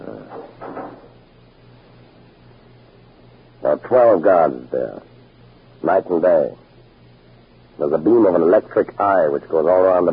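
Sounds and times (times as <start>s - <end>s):
low steady hum: 0.0s - 10.1s
heavy fire door swinging shut: 0.3s - 1.1s
speech: 3.6s - 5.1s, 5.8s - 6.6s, 7.8s - 10.1s.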